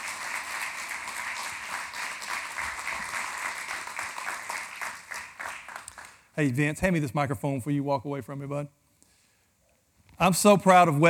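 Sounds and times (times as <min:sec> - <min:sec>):
audience clapping: 0:00.0 - 0:06.4
speech: 0:06.4 - 0:08.8, 0:10.2 - 0:11.0.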